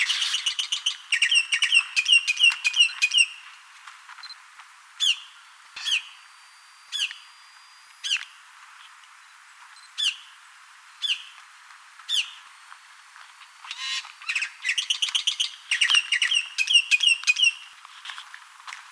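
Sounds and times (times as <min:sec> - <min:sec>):
bird chirping calls: 0:00.0 - 0:03.4, 0:05.0 - 0:08.4, 0:10.0 - 0:10.4, 0:11.0 - 0:11.4, 0:12.1 - 0:12.5, 0:13.7 - 0:17.7.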